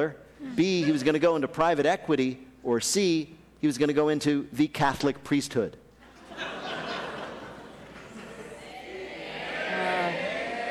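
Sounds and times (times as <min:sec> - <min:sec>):
speech: 0:00.0 - 0:05.8
laughter: 0:00.4 - 0:01.2, 0:06.0 - 0:10.6
live audience yelling out an answer: 0:08.2 - 0:10.6.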